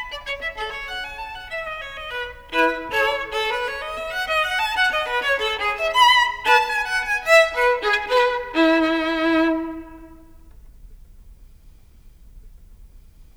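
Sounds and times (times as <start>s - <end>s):
solo violin partita in E: 0.0s - 10.6s.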